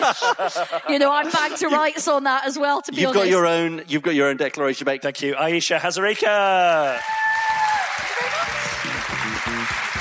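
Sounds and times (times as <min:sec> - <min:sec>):
laughter: 0:00.0 - 0:02.0
speech: 0:00.0 - 0:07.5
audience applause: 0:06.6 - 0:09.9.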